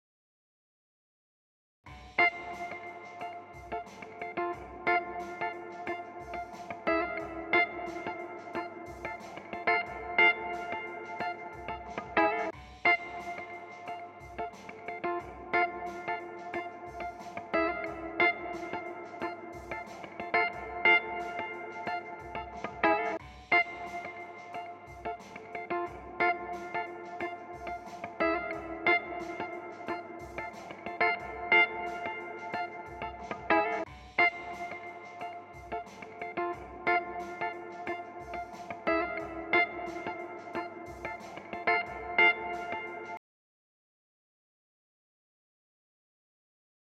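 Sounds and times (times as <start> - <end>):
guitar: 1.9 - 43.2.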